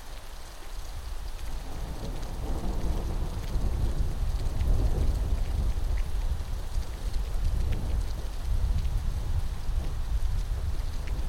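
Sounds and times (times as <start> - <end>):
heavy rain in a September thunderstorm: 0.0 - 11.2.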